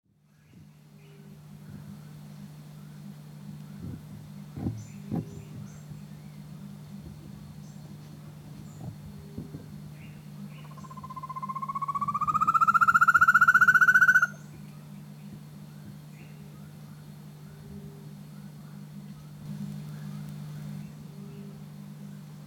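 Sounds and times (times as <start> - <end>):
rufous-tailed antthrush song of hollow notes: 10.7 - 14.4.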